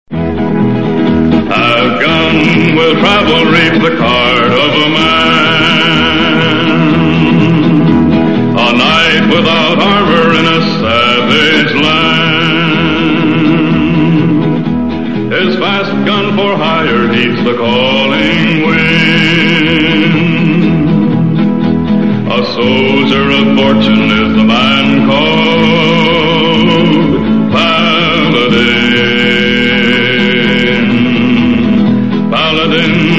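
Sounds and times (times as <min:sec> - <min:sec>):
TV theme music: 0:00.1 - 0:33.1.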